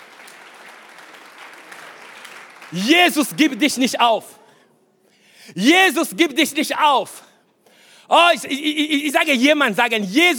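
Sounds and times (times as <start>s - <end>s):
audience applauding: 0.0s - 3.5s
speech: 2.7s - 4.4s, 5.5s - 7.3s, 8.1s - 10.3s.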